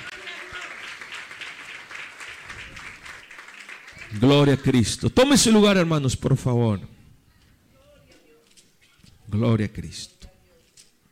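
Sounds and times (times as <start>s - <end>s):
audience clapping in praise: 0.0s - 4.9s
speech: 4.1s - 7.0s, 9.4s - 10.2s.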